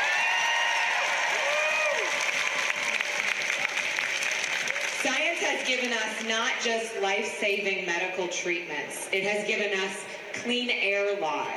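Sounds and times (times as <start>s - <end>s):
audience applause: 0.0s - 5.7s
speech: 5.7s - 11.5s.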